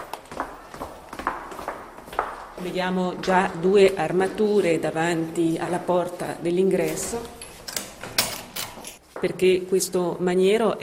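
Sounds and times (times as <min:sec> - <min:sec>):
footsteps walking down a staircase in a castle: 0:00.0 - 0:08.2
speech: 0:02.6 - 0:07.4, 0:09.2 - 0:10.8.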